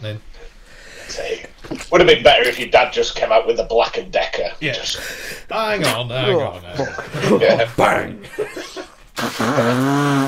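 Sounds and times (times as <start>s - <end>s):
speech: 0.0s - 8.6s, 9.2s - 10.2s
laughter: 6.7s - 10.0s
sneeze: 9.2s - 10.2s.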